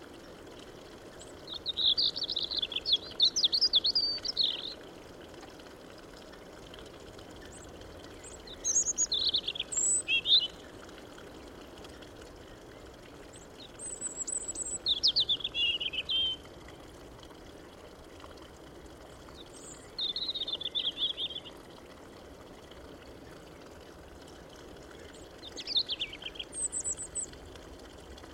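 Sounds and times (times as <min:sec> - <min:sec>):
European robin singing: 0:01.4 - 0:04.8, 0:07.5 - 0:10.7, 0:13.6 - 0:16.4, 0:19.4 - 0:21.6, 0:25.0 - 0:27.3.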